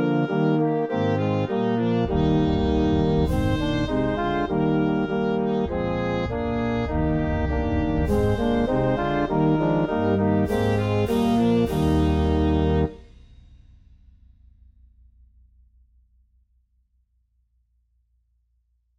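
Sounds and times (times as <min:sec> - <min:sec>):
trumpet melody: 0:00.0 - 0:13.0.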